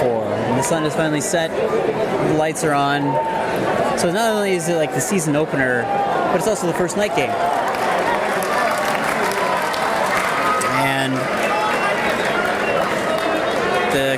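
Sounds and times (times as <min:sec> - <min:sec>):
speech: 0:00.0 - 0:07.8
baseball crowd clapping: 0:07.2 - 0:14.1.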